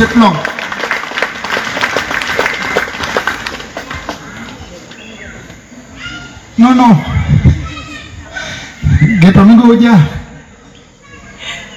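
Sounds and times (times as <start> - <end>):
speech: 0.0 - 0.5, 6.6 - 7.2, 9.2 - 10.2
audience applause: 0.0 - 4.3.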